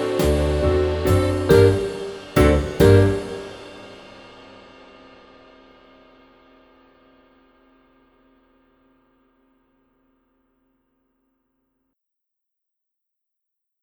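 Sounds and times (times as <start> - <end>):
waltz music: 0.0 - 3.7.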